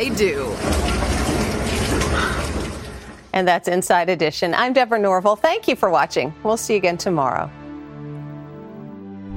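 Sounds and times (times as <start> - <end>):
speech: 0.0 - 1.0, 3.4 - 7.6
heavy rain at a zoo: 0.6 - 3.2.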